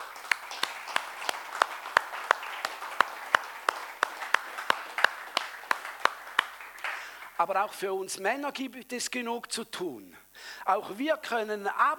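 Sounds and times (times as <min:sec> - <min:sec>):
audience applause: 0:00.0 - 0:07.4
speech: 0:07.4 - 0:11.9.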